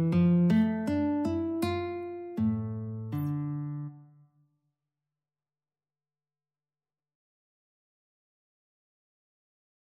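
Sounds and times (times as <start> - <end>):
guitar prelude: 0.0 - 4.1.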